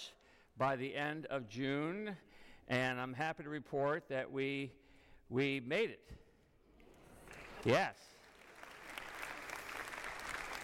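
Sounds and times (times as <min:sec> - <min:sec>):
speech: 0:00.0 - 0:06.2, 0:07.6 - 0:08.1
crowd clapping: 0:06.9 - 0:10.6.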